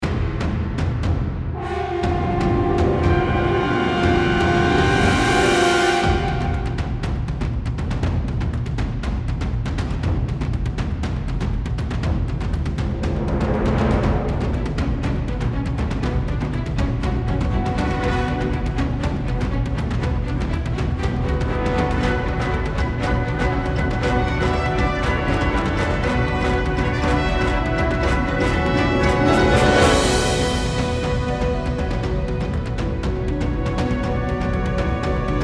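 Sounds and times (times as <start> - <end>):
field background music: 0.0 - 35.4.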